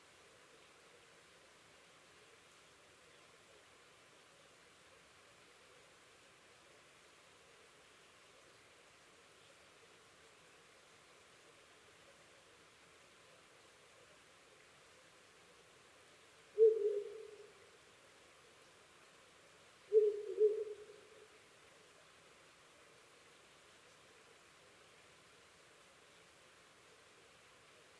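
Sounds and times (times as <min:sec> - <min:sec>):
owl hooting: 0:16.6 - 0:17.6, 0:19.9 - 0:21.3.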